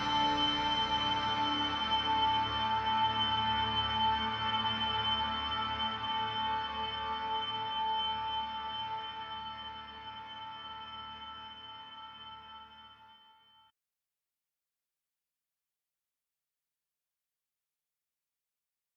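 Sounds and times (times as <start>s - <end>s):
generative synthesizer drones through pedals: 0.0s - 11.3s.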